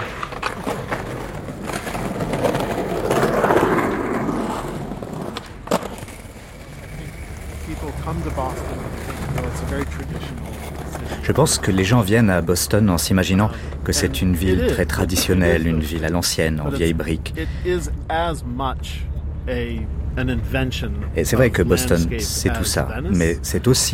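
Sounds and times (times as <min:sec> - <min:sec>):
skateboard wheels rolling: 0:00.0 - 0:16.2
indistinct voices murmuring: 0:06.7 - 0:23.9
speech: 0:11.3 - 0:23.9.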